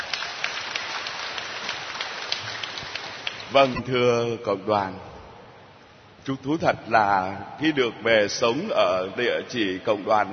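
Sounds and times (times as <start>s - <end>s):
audience applauding: 0.0s - 3.8s
speech: 3.5s - 5.1s, 6.3s - 10.3s.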